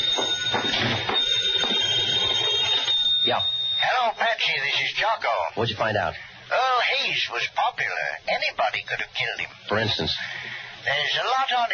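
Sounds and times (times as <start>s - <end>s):
telephone ringing: 0.0s - 5.1s
speech: 3.3s - 3.6s, 5.0s - 11.7s.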